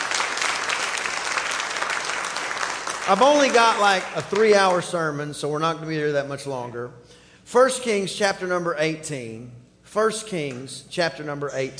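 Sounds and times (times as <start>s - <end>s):
hand clapping of praise: 0.0s - 4.9s
speech: 3.1s - 11.7s.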